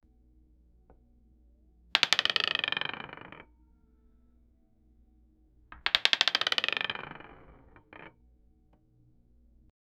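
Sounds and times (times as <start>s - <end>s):
dice: 2.0s - 3.5s, 5.7s - 8.2s.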